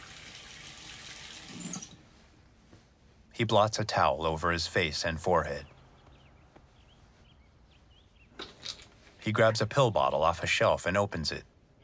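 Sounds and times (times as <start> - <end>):
water running from a bathroom sink tap: 0.0 - 2.0
speech: 3.4 - 5.7, 9.3 - 11.5.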